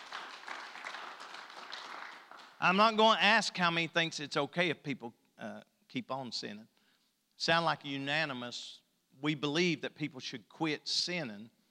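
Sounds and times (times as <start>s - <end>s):
audience hand clapping: 0.0s - 3.0s
speech: 2.6s - 6.8s, 7.4s - 11.6s.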